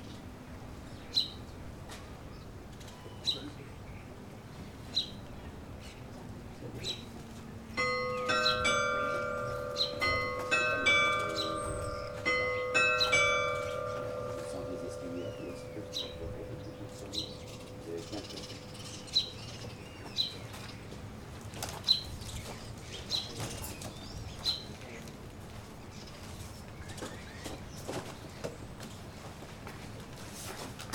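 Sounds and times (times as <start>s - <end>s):
early morning soundscape at Mont Saint Michel: 0.0s - 30.9s.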